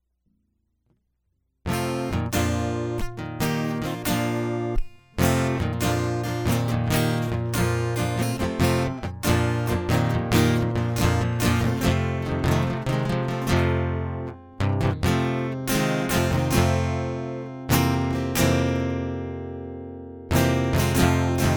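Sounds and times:
guitar prelude: 1.7s - 21.5s.

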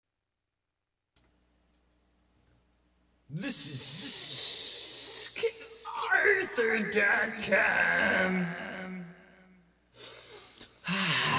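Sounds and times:
speech: 3.3s - 4.1s, 6.5s - 8.7s
person gasping and struggling to catch their breath: 10.0s - 11.3s.

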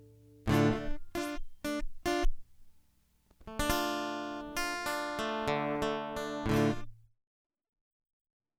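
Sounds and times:
dirty guitar loop: 0.0s - 2.5s, 3.4s - 6.9s.

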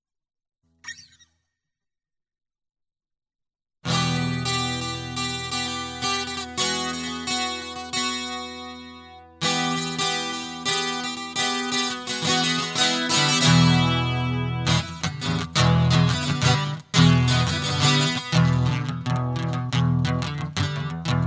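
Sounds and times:
guitar: 0.8s - 1.3s, 3.8s - 21.2s.

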